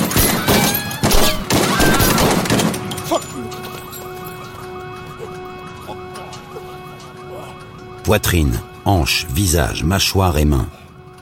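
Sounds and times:
gunshots fired at close range: 0.0 - 3.0
speech: 8.1 - 10.8.

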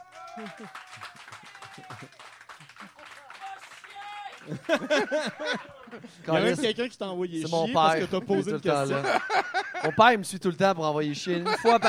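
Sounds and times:
audience applause: 0.0 - 6.4
laughter: 0.3 - 6.8, 7.5 - 10.1, 11.2 - 11.8
speech: 0.4 - 1.1, 1.8 - 2.2, 4.4 - 11.8.

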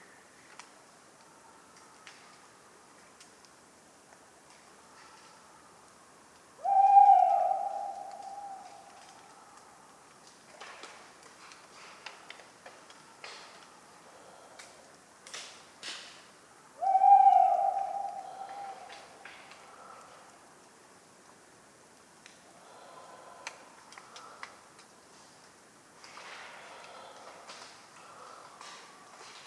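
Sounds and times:
tawny owl hoot: 6.6 - 9.0, 16.8 - 19.1.

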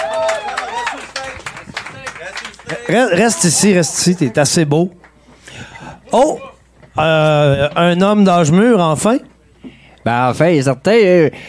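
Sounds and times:
audience applause: 0.0 - 4.4
speech: 2.8 - 5.0, 6.1 - 9.3, 10.0 - 11.4.

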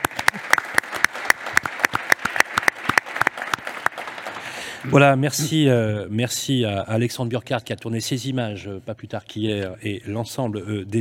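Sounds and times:
audience applause: 0.0 - 5.0
speech: 4.8 - 10.9.

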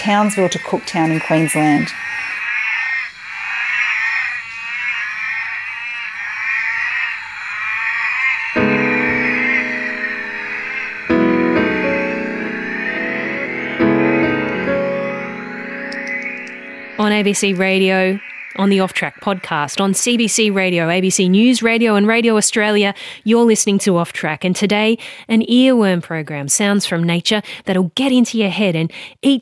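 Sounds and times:
speech: 0.0 - 2.2, 17.1 - 29.4
northern orange eyed tree frog Latoria xanthomera calling: 0.0 - 22.9.

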